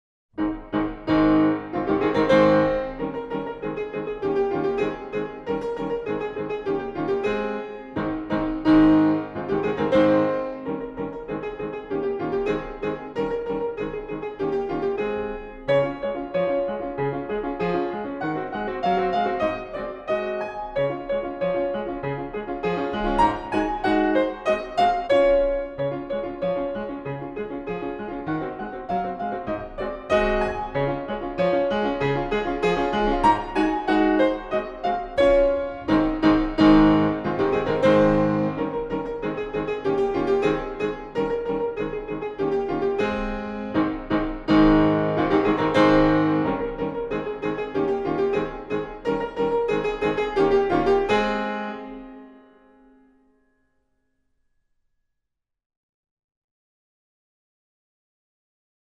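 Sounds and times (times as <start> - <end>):
piano galop in A flat major: 0.4 - 54.0.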